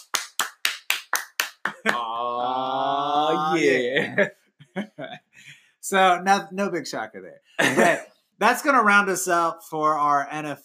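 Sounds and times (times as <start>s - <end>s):
hand claps: 0.0s - 2.1s
laughter: 1.7s - 5.3s, 7.6s - 8.0s
speech: 1.8s - 2.4s, 3.5s - 10.6s.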